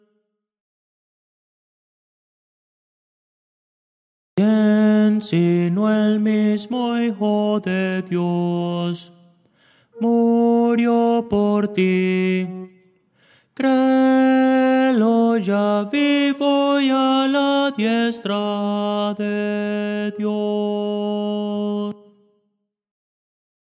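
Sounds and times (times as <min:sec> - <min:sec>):
tenor singing Christian hymns: 0:04.4 - 0:22.0.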